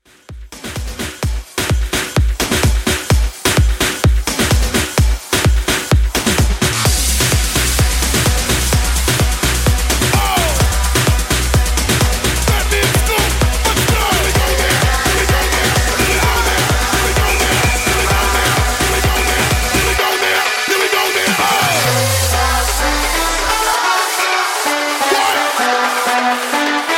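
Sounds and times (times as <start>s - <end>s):
hype trumpet house music: 0.0s - 26.9s.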